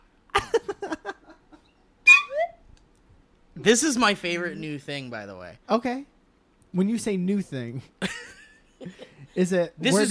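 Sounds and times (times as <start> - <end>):
slide whistle: 2.1 - 2.5
speech: 3.6 - 6.1, 6.8 - 8.2, 8.8 - 10.0.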